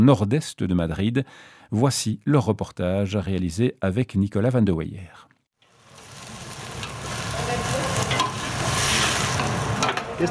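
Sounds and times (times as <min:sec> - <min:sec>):
speech: 0:00.0 - 0:05.3
onions sautéing in a pan for a ravioli filling: 0:05.6 - 0:10.2.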